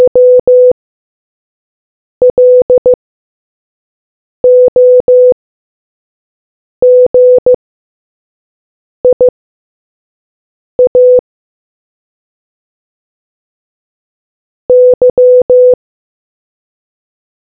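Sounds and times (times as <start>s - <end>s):
morse code beeps: 0.0s - 0.8s, 2.3s - 3.0s, 4.4s - 5.4s, 6.8s - 7.6s, 9.1s - 9.3s, 10.8s - 11.2s, 14.7s - 15.8s.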